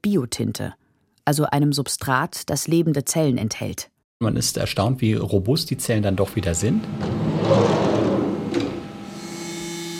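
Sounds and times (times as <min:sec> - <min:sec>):
speech: 0:00.1 - 0:08.1
bio-ink printing line with shuttles travelling in a circle whirring and clattering: 0:06.4 - 0:09.9.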